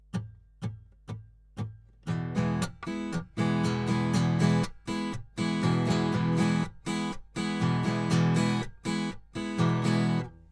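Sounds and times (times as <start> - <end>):
strumming at 120 bpm: 2.0 - 10.4.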